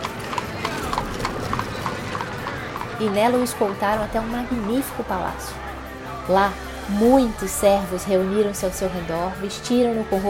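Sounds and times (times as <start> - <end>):
horse-drawn carriage hooves clip-clopping: 0.0 - 5.5
carriage rolling rumble: 0.0 - 5.9
speech: 3.0 - 5.6, 6.3 - 10.2.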